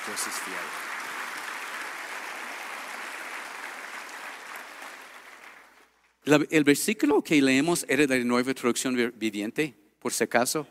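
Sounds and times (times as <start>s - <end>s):
audience applause: 0.0s - 6.0s
speech: 0.1s - 1.1s, 6.3s - 10.6s.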